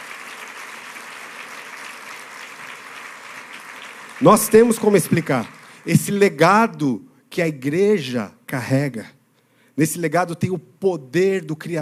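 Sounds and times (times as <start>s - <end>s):
audience clapping: 0.0s - 6.3s
speech: 4.2s - 9.2s, 9.8s - 11.7s.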